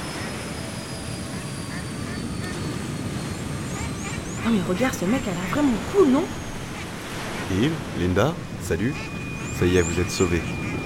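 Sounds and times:
helicopter flying overhead: 0:00.0 - 0:10.8
speech: 0:04.5 - 0:06.4, 0:07.5 - 0:10.6.

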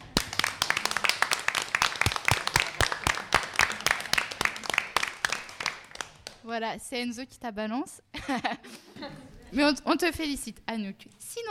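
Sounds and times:
audience applause: 0:00.0 - 0:06.4
laughter: 0:00.4 - 0:04.9, 0:08.2 - 0:09.6
speech: 0:06.5 - 0:11.4.

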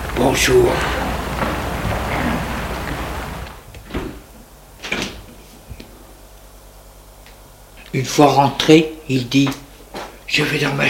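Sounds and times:
door opening: 0:00.0 - 0:05.3
speech: 0:00.2 - 0:01.0, 0:08.0 - 0:09.6, 0:10.3 - 0:10.8.

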